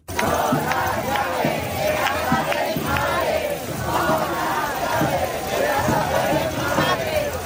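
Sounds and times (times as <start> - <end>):
large protest crowd shouting and chanting: 0.0 - 7.4
laughter: 0.1 - 7.4.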